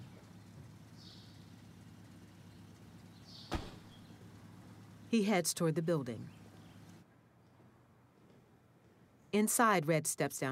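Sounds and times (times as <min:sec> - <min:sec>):
car back door opening: 0:03.4 - 0:04.0
speech: 0:05.1 - 0:06.4, 0:09.4 - 0:10.4.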